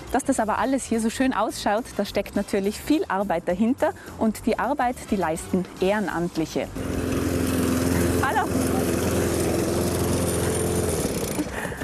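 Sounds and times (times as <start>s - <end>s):
speech: 0.1s - 7.2s
lawn mower mowing grounds around a pond: 6.7s - 11.8s.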